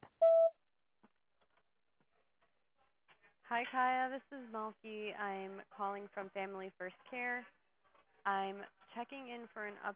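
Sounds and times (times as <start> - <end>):
voicemail recording tone beep: 0.2 - 0.6
speech: 3.5 - 7.6, 8.2 - 9.9.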